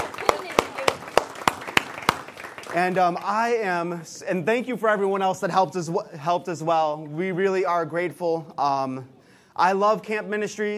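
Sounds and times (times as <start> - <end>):
church camp audience clapping for the teenagers: 0.0 - 3.7
speech: 2.8 - 10.7.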